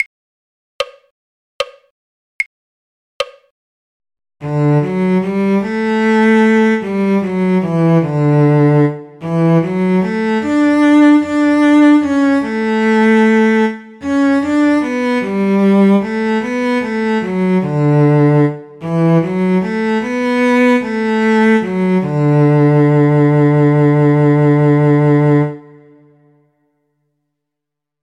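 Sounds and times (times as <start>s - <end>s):
cello: 4.4s - 26.4s.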